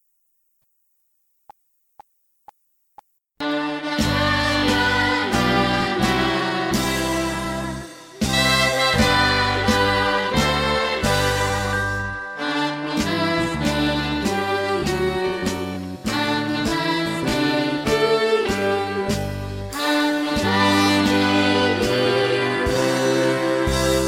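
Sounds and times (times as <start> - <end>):
birthday party song: 3.5 - 24.0.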